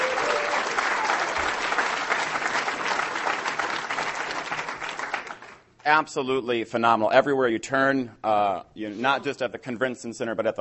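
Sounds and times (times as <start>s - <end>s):
audience applause for conference volunteers: 0.0s - 5.6s
speech: 5.9s - 10.5s.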